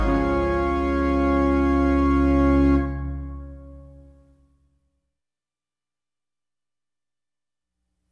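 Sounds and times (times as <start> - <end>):
hymn tune: 0.0 - 4.2.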